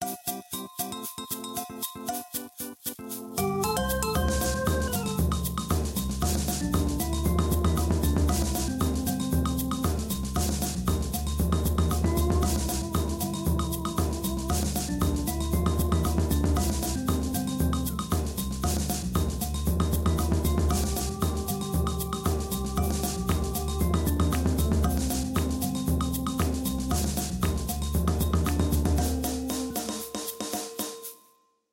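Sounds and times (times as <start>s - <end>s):
samba limbo music verse: 2.4s - 31.0s.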